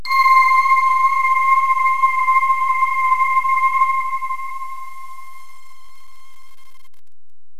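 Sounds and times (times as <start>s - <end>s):
voice bells on C4: 0.0s - 5.8s.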